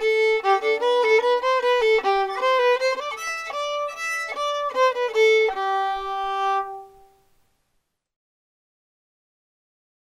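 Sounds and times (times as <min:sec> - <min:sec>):
fiddle: 0:00.0 - 0:07.3.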